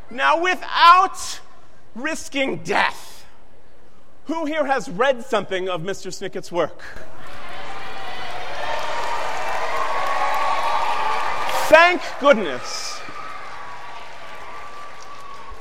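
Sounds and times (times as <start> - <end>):
speech: 0.1 - 1.4, 2.0 - 3.2, 4.3 - 7.4, 11.7 - 12.9
audience applause: 7.2 - 15.5.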